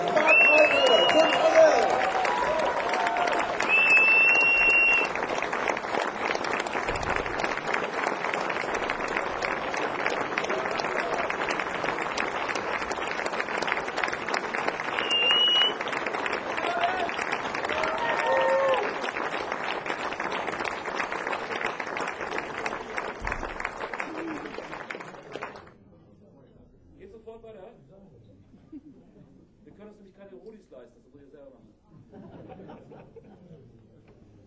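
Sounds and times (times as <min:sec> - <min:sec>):
large crowd applauding: 0:00.0 - 0:25.8
sharp whistles: 0:00.2 - 0:01.5, 0:03.6 - 0:05.1, 0:14.9 - 0:15.8
laughter: 0:31.9 - 0:33.8.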